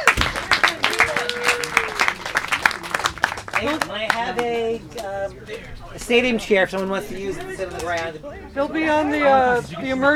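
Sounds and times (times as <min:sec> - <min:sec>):
crowd clapping: 0:00.0 - 0:05.7
low murmur of voices: 0:00.0 - 0:10.1
speech: 0:03.6 - 0:10.1.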